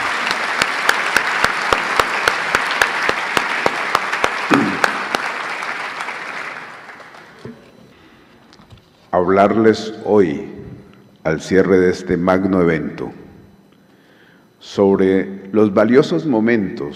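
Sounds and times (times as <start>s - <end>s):
audience applause: 0.0s - 7.7s
speech: 9.2s - 10.6s, 11.2s - 13.2s, 14.6s - 16.9s.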